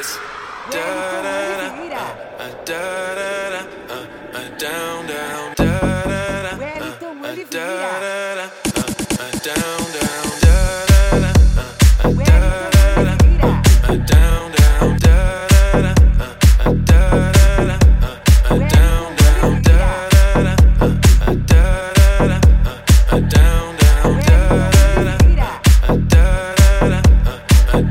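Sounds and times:
funk music: 0:05.6 - 0:07.0, 0:08.7 - 0:27.8.

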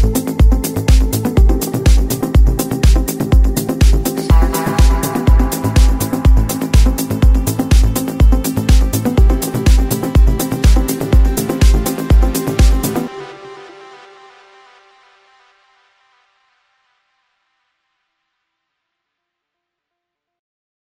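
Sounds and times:
progressive melodic house music: 0:00.0 - 0:16.0.

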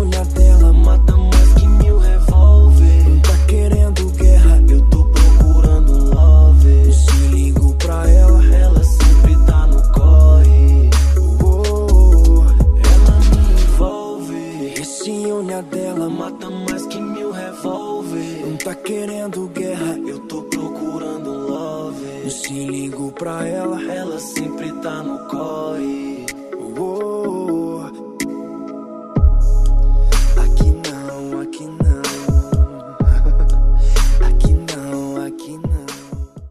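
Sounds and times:
bass: 0:00.0 - 0:13.9, 0:29.2 - 0:30.8, 0:33.0 - 0:34.6.

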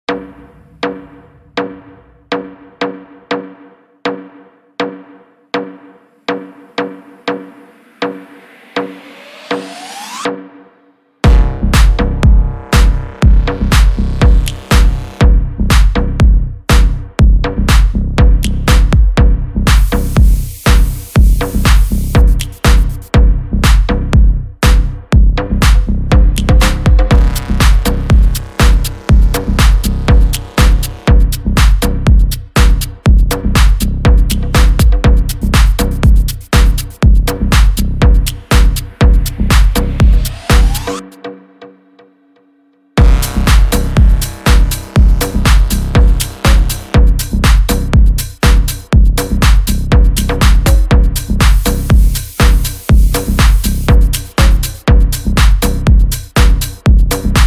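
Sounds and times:
energetic electronic music: 0:05.0 - 0:42.0, 0:43.0 - 0:57.4.

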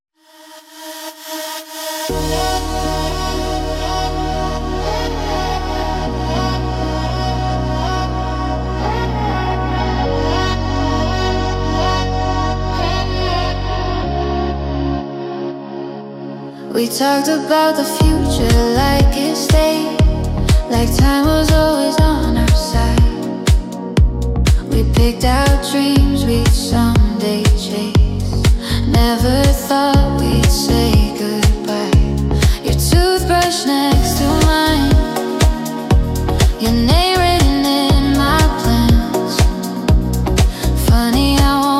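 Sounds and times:
house music: 0:00.8 - 0:16.3, 0:17.0 - 0:41.7.

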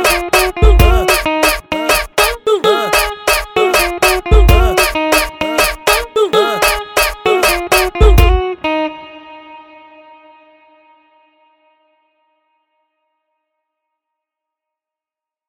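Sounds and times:
electro funk music: 0:00.0 - 0:08.8.

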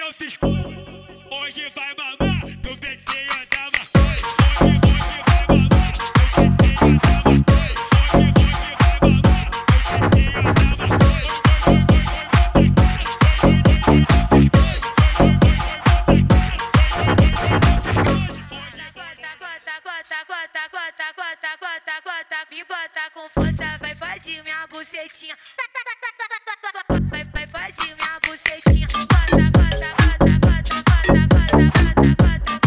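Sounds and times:
funk drum beat: 0:02.6 - 0:18.2, 0:27.4 - 0:32.6.

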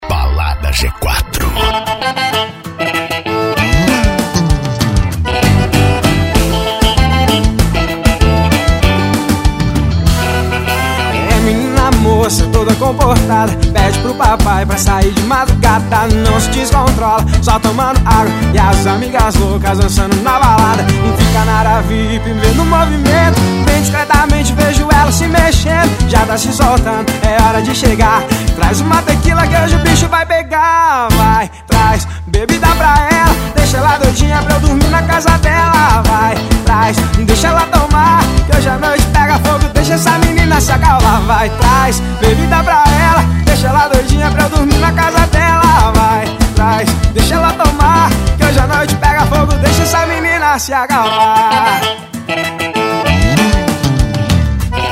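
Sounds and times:
arrocha sertanejo music: 0:00.0 - 0:54.9.

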